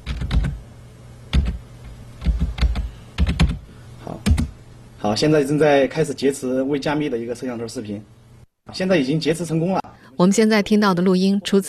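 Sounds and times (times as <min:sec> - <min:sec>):
computer keyboard typing a camera ID: 0:00.0 - 0:00.6, 0:01.3 - 0:01.6, 0:02.2 - 0:03.6
low steady hum: 0:00.0 - 0:11.6
speech: 0:05.0 - 0:11.6.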